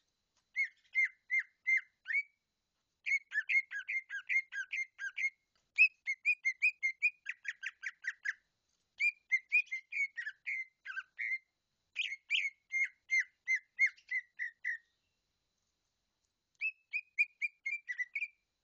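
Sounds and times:
leafbird song of whistled phrases: 0.5 - 2.4, 3.0 - 15.0, 16.6 - 18.4.

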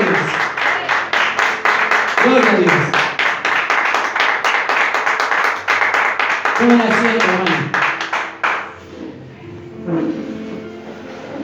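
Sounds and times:
church congregation applauding: 0.0 - 9.0
speech: 2.2 - 3.0, 6.6 - 7.8.

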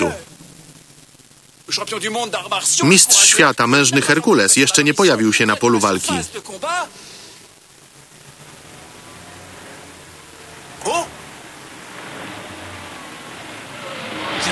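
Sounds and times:
speech: 0.0 - 0.2, 1.7 - 7.2
car approaching: 8.0 - 14.5.

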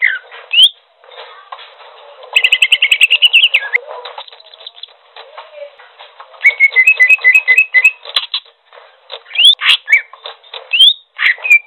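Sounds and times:
bird singing trills: 0.0 - 0.8, 2.3 - 4.9, 6.4 - 8.5, 9.3 - 11.6.

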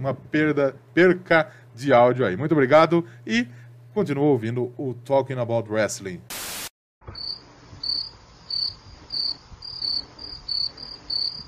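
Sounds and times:
speech: 0.0 - 6.4
cricket chirping: 7.2 - 11.4.

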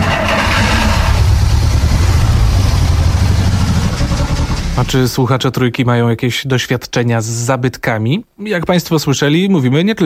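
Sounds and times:
restored vintage car engine starting: 0.0 - 5.4
speech: 4.8 - 10.0.

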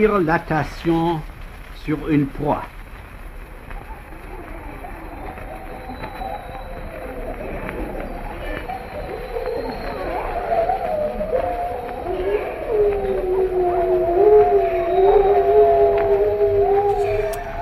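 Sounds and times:
speech: 0.0 - 2.8
Siberian wolves howling: 3.3 - 17.6.

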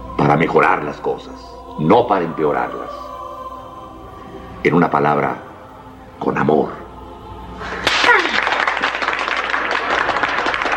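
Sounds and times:
speech: 0.3 - 3.1, 4.6 - 5.5, 6.2 - 6.8
audience applause for a professor: 7.7 - 10.7.

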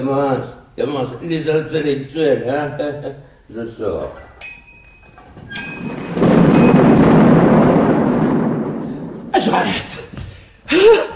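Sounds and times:
speech: 0.0 - 4.3
thunderstorm with lightning and rain: 5.7 - 10.1.

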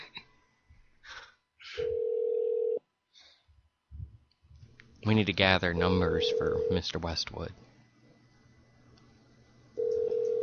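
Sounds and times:
hotel phone system telephone tone transferring a call to a room: 1.8 - 2.8, 9.8 - 10.4
speech: 5.1 - 7.7.

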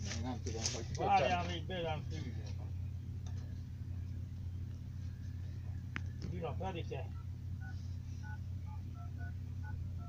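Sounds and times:
low hum and rumble: 0.0 - 10.0
speech: 0.2 - 2.6, 6.4 - 7.2
keypad beeps of buttons pressed on a waterproof phone: 7.1 - 10.0.

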